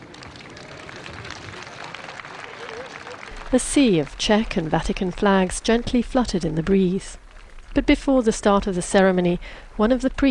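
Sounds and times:
large open-air crowd of pilgrims clapping: 0:00.0 - 0:07.7
speech: 0:03.5 - 0:10.2.

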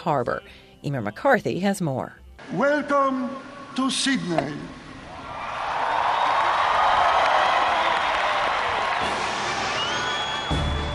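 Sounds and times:
speech: 0:00.0 - 0:04.8
crowd of young pilgrims cheering at World Youth Day on Barangaroo wharf, Sydney: 0:02.5 - 0:10.9.

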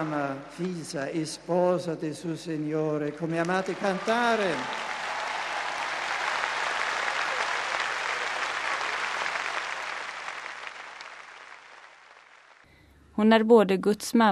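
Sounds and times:
speech: 0:00.0 - 0:04.9, 0:13.2 - 0:14.3
crowd cheering for the pope: 0:03.1 - 0:12.6.

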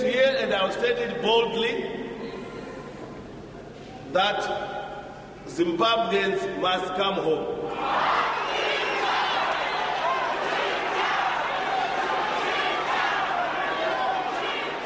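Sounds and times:
speech: 0:00.6 - 0:02.0, 0:04.1 - 0:04.8, 0:05.5 - 0:08.3
large crowd jeering and chanting: 0:07.7 - 0:14.8.

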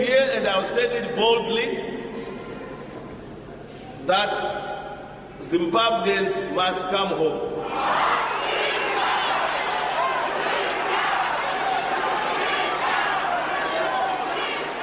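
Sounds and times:
speech: 0:00.0 - 0:02.0, 0:04.0 - 0:04.7, 0:05.4 - 0:08.1
crowd jeering and chanting: 0:07.6 - 0:14.8.

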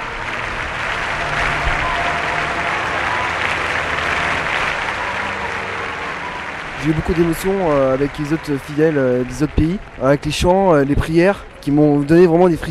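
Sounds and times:
crowd ovation at a funeral as the coffin leaves the church square: 0:00.0 - 0:12.6
speech: 0:06.8 - 0:12.6.

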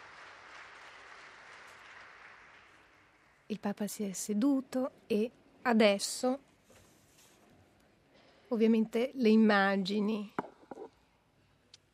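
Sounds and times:
large crowd applause in an indoor hall: 0:00.0 - 0:03.4
speech: 0:03.5 - 0:06.5, 0:08.5 - 0:10.4.

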